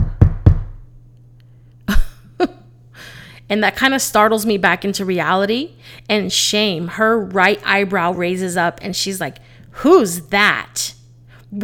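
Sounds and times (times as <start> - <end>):
knocking at a door: 0.0 - 0.9
speech: 3.5 - 11.6.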